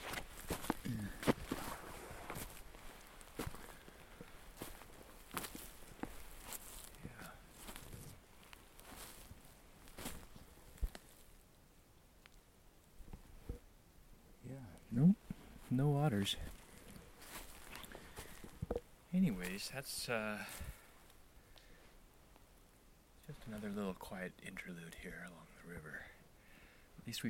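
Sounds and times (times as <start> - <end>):
crunchy footsteps walking along a riverside path: 0.0 - 11.3, 15.2 - 19.8
speech: 15.8 - 16.5, 19.2 - 20.7, 23.5 - 26.2, 27.1 - 27.2.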